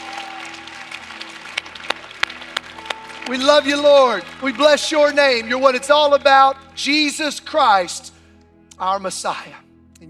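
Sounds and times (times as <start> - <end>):
audience shouting: 0.0 - 1.9, 2.6 - 5.6
audience clapping: 0.0 - 6.8
speech: 3.3 - 8.1, 8.8 - 9.6.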